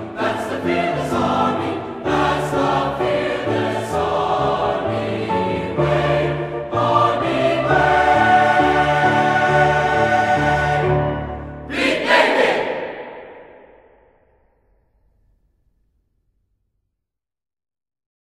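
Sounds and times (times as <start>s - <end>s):
musical accompaniment: 0.0s - 13.1s.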